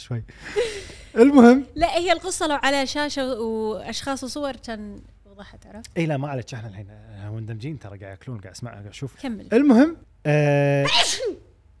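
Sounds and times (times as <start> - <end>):
speech: 0.0 - 11.4
person sneezing: 10.8 - 11.5.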